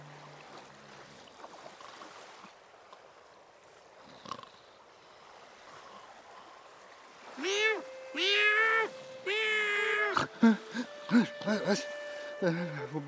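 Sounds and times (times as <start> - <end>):
cat meowing: 7.4 - 10.3
speech: 10.4 - 13.0.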